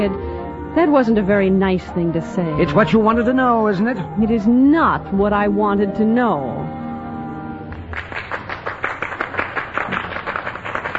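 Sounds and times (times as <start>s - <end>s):
speech: 0.0s - 6.8s
audience clapping for music: 7.7s - 10.9s.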